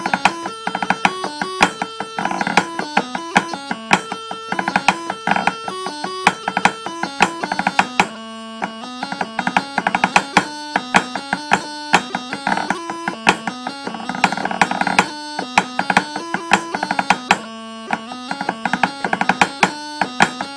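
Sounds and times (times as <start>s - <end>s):
Galician jig tune: 0.0s - 20.5s.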